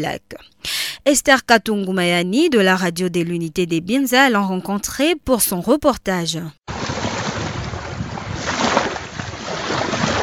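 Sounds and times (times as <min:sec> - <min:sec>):
speech: 0:00.0 - 0:06.7
lapping lake water at Nyakakoma: 0:06.7 - 0:10.2
wind on the edge of Lake Edward at Nyakakoma: 0:06.7 - 0:10.2.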